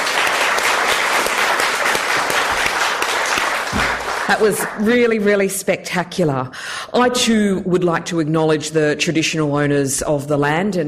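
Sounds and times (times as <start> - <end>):
audience applause at a World AIDS Day event: 0.0 - 4.9
speech: 4.3 - 10.8.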